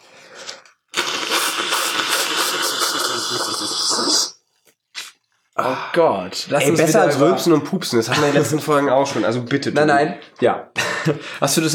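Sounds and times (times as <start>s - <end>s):
nose blowing: 0.0s - 5.2s
speech: 5.6s - 11.7s.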